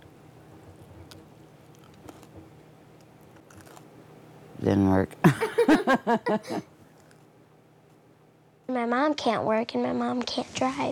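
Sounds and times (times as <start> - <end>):
crunchy biting and chewing of food: 1.0 - 2.4, 3.2 - 3.9
speech: 4.6 - 6.7, 8.8 - 10.8
laughter: 5.2 - 6.7.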